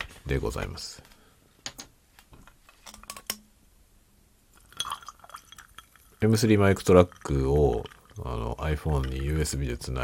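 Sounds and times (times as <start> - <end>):
speech: 0.3 - 1.1, 6.2 - 10.0
ice clinking in a glass: 4.6 - 9.6
fizzy drink pouring into a glass with ice: 4.6 - 9.9.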